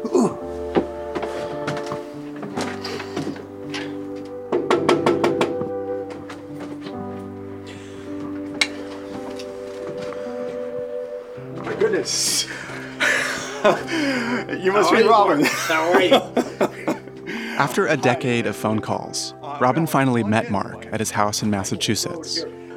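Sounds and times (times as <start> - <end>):
sustained musical tones: 0.0 - 22.7
knocking on a house door: 4.5 - 5.7
laughter: 12.0 - 18.2
speech: 13.6 - 14.0, 14.6 - 16.4, 17.6 - 22.6.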